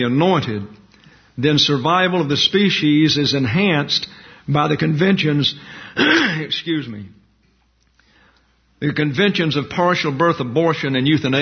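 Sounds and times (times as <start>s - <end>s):
speech: 0.0s - 0.8s, 1.4s - 7.2s, 8.8s - 11.4s
man clearing phlegm from his throat: 6.0s - 6.5s.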